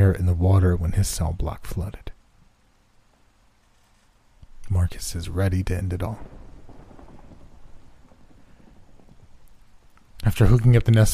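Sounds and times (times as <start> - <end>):
speech: 0.0 - 2.1, 4.7 - 6.4, 10.2 - 11.1
steady rain: 0.0 - 11.1
thunder rumbling: 4.8 - 11.1.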